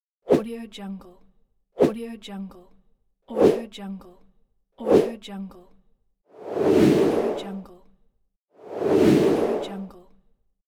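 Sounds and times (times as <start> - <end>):
whoosh: 6.4 - 7.7, 8.6 - 10.0.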